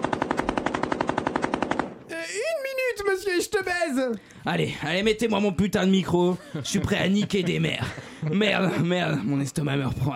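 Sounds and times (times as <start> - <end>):
machine gun fire: 0.0 - 2.0
speech: 3.2 - 10.1
laughter: 5.9 - 9.4.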